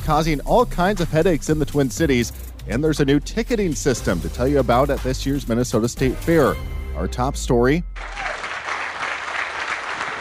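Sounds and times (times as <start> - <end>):
speech: 0.1 - 8.3
applause for Minneapolis police officer leaving North Memorial Hospital: 8.0 - 10.1.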